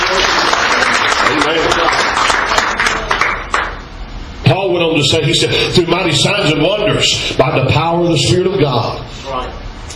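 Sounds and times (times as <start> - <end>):
audience clapping hands in praise: 0.0 - 3.9
speech: 5.0 - 9.6.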